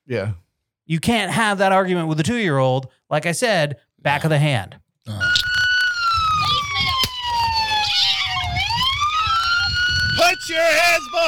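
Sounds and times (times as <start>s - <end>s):
speech: 0.1s - 5.5s, 10.5s - 11.2s
police siren wailing: 5.2s - 11.2s.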